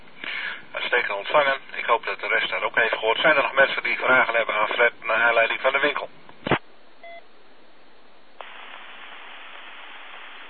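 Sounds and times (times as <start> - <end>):
radio static hiss: 0.2 - 6.6, 8.4 - 10.4
speech: 1.1 - 6.2
radio repeater drop-out two-tone electronic beep: 7.0 - 7.2.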